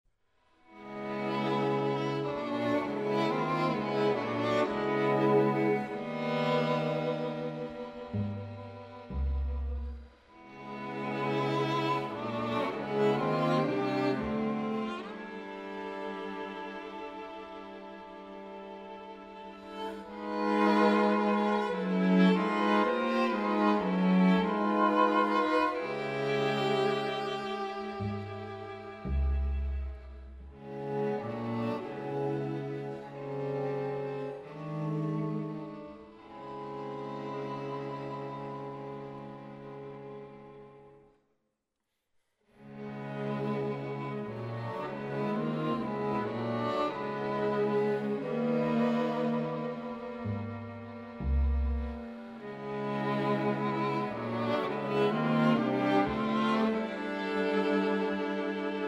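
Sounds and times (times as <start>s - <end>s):
string quartet playing: 0.7s - 41.0s, 42.6s - 58.8s.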